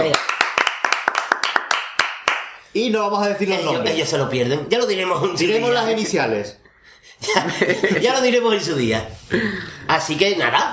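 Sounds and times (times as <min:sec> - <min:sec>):
applause: 0:00.0 - 0:02.6
speech: 0:02.8 - 0:10.7
laughter: 0:07.2 - 0:08.5.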